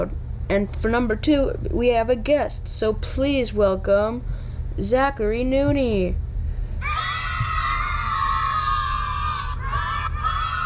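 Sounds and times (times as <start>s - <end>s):
speech: 0.0s - 6.2s
horde of kids cheering and shouting: 6.8s - 10.6s.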